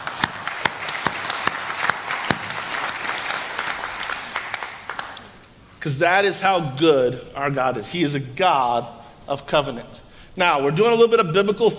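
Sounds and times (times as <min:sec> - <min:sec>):
crowd of people clapping hands in praise: 0:00.0 - 0:05.4
speech: 0:05.8 - 0:11.7.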